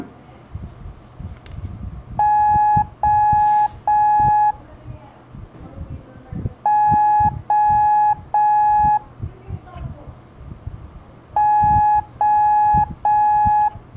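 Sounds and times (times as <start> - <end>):
low noise: 0.0 - 13.9
Morse code beeps for letter O, long tones: 2.2 - 4.6, 6.6 - 9.1, 11.4 - 13.8.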